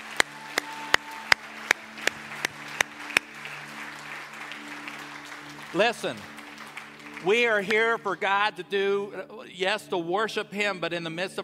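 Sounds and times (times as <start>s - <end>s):
audience applause: 0.0s - 8.3s
speech: 5.7s - 6.3s, 7.2s - 11.4s.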